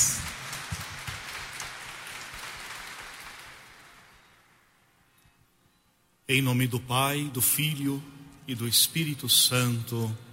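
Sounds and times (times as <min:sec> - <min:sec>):
crowd applauding: 0:00.0 - 0:04.6
speech: 0:06.3 - 0:10.3.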